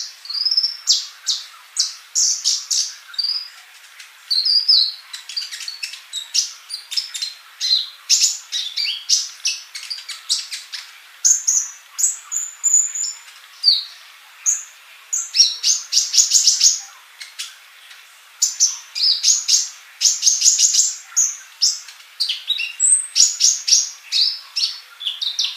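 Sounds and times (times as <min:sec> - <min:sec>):
bird song: 0:00.0 - 0:25.5.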